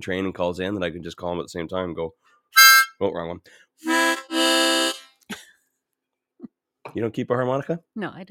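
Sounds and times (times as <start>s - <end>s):
speech: 0.0s - 4.2s, 7.0s - 8.2s
prop novelty horn tooting: 2.6s - 3.0s, 3.8s - 5.1s.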